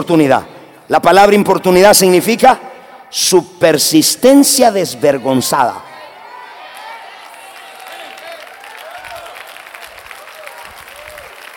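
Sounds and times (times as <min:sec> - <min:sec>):
speech: 0:00.0 - 0:05.9
scattered cheers and shouts: 0:05.2 - 0:11.5
crowd clapping: 0:06.6 - 0:11.5.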